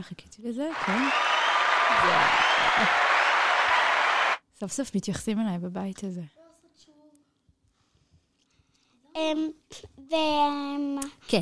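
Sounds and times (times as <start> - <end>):
speech: 0.0 - 1.4, 2.0 - 3.1, 4.6 - 6.9, 9.2 - 11.4
group applause: 0.7 - 4.4
laughter: 0.8 - 4.1.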